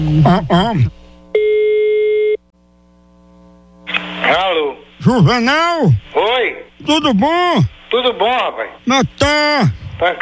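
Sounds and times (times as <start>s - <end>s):
speech: 0.1s - 1.5s, 4.3s - 10.2s
telephone ringback tone as a call is placed: 1.3s - 2.4s.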